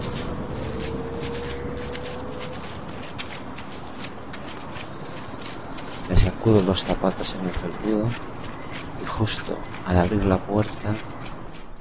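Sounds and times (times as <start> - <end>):
rain: 0.0 - 7.7
footsteps on a wet muddy path: 0.0 - 11.7
speech: 6.4 - 8.4, 9.2 - 11.2.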